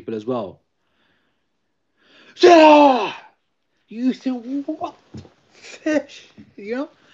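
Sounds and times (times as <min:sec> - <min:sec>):
speech: 0:00.0 - 0:00.6, 0:02.4 - 0:03.2, 0:03.9 - 0:07.0
person imitating an exaggerated very loud sneeze: 0:02.4 - 0:03.2.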